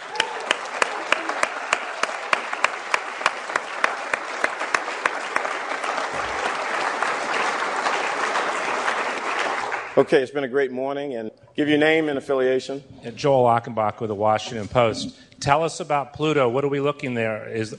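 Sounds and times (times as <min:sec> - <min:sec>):
audience applause: 0:00.0 - 0:10.2
speech: 0:10.0 - 0:17.7.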